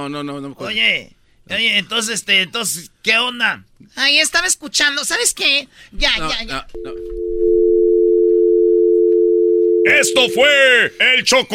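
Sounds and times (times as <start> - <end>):
speech: 0.0 - 7.2, 9.8 - 11.5
telephone dial tone after hanging up: 6.8 - 10.4.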